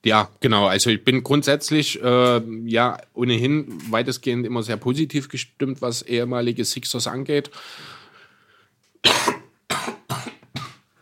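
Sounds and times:
speech: 0.0s - 8.0s
harsh coughs: 9.0s - 10.9s.

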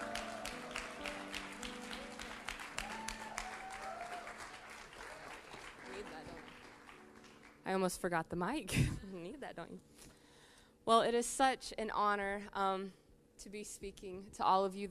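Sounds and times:
church congregation applause welcoming a speaker: 0.0s - 7.6s
speech: 7.7s - 10.2s, 10.9s - 14.8s.

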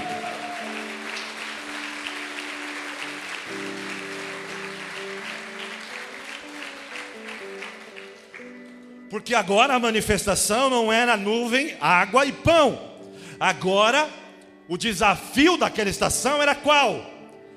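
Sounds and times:
audience applauding: 0.0s - 9.0s
sustained keyboard chords: 0.0s - 17.5s
speech: 9.1s - 17.1s.

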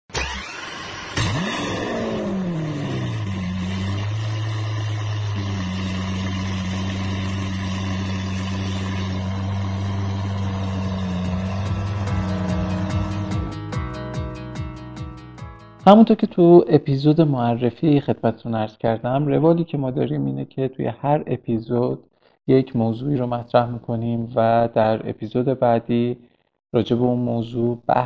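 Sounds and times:
minibus engine starting, idling and revving: 0.1s - 13.6s
speech: 15.9s - 28.0s.

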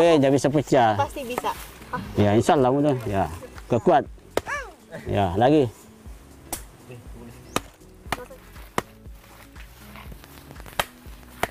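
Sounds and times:
speech: 0.0s - 4.2s, 4.9s - 5.8s
faint voices murmuring: 0.0s - 10.1s
wooden stick pounding: 7.5s - 9.0s, 10.6s - 11.4s.

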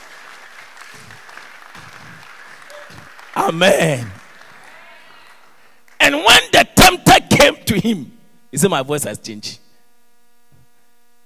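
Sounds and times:
audience clapping hands: 0.0s - 6.1s
speech: 3.4s - 4.2s, 7.4s - 9.6s.

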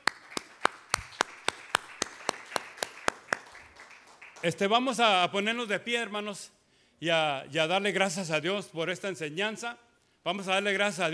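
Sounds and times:
audience applauding: 0.0s - 4.7s
speech: 4.4s - 11.1s.

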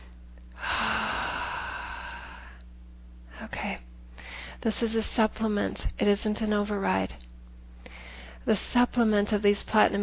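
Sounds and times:
deep breath during a guided relaxation: 0.6s - 2.6s, 4.2s - 4.6s, 7.8s - 8.4s
speech: 4.6s - 7.3s, 8.5s - 10.0s.

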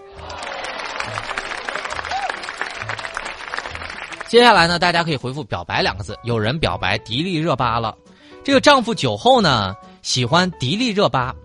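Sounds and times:
applause: 0.0s - 4.6s
speech: 4.3s - 11.4s.

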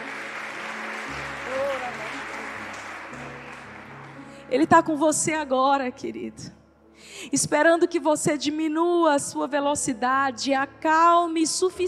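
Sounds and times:
audience applause: 0.0s - 4.4s
speech: 4.5s - 11.8s.

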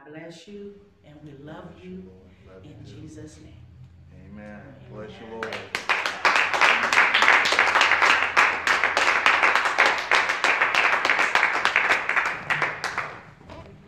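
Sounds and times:
speech: 0.1s - 3.6s, 4.2s - 6.0s
crowd applause: 5.4s - 13.8s.

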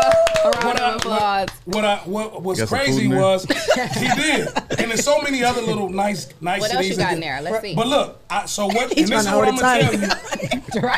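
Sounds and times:
audience applause: 0.0s - 1.3s
speech: 0.4s - 10.9s
laughter: 2.7s - 5.9s, 8.6s - 10.9s.

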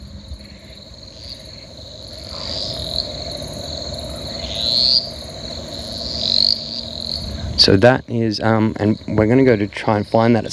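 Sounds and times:
chorus of crickets and other insects buzzing: 0.0s - 10.5s
cane toad trilling: 0.4s - 7.6s
speech: 7.7s - 10.5s.

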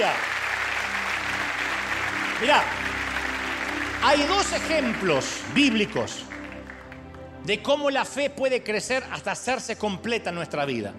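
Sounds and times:
audience applauding: 0.0s - 7.4s
speech: 2.4s - 2.9s, 4.0s - 6.3s, 7.4s - 10.9s.

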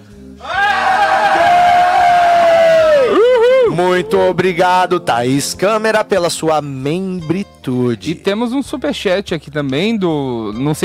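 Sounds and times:
group shouting to welcome a new member: 0.4s - 3.8s
speech: 4.0s - 10.8s.

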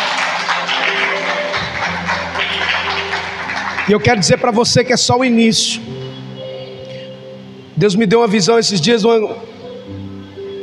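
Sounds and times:
audience applauding: 0.0s - 4.7s
speech: 3.9s - 6.0s, 7.8s - 9.6s.

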